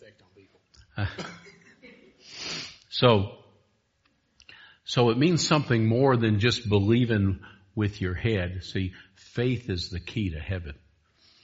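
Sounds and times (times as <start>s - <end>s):
speech: 0.2s - 1.5s, 3.0s - 3.4s, 4.9s - 10.8s
person sneezing: 1.0s - 2.8s.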